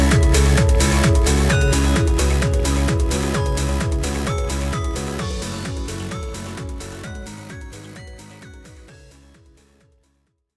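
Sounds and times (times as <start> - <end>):
applause: 0.0 - 7.9.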